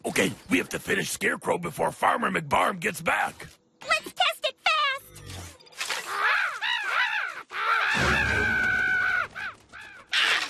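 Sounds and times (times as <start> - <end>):
speech: 0.1 - 3.6
crows cawing: 6.0 - 10.4.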